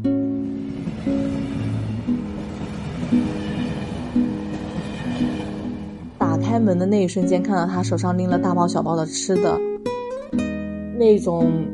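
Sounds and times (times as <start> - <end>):
train running: 0.2 - 8.6
speech: 6.6 - 9.7, 11.0 - 11.7.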